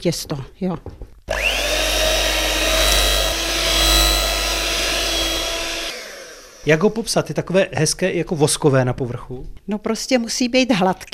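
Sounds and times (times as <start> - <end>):
speech: 0.0 - 1.5, 6.6 - 11.1
food mixer kneading dough with hooks: 1.3 - 6.7.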